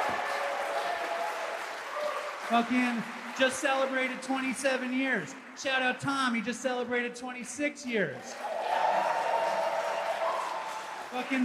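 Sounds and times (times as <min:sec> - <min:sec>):
crowd applause for a speaker: 0:00.0 - 0:05.3, 0:08.2 - 0:11.4
speech: 0:02.5 - 0:08.5, 0:11.1 - 0:11.4.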